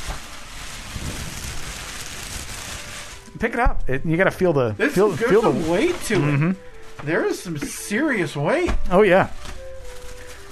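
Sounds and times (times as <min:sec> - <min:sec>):
tissue paper rustling inside a gift bag: 0:00.0 - 0:03.6, 0:04.2 - 0:10.5
speech: 0:03.4 - 0:09.5.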